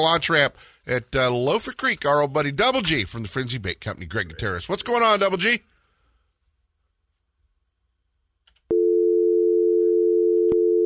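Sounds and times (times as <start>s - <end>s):
speech: 0.0s - 5.7s
dial tone: 8.7s - 10.8s
phone call click: 9.8s - 10.7s.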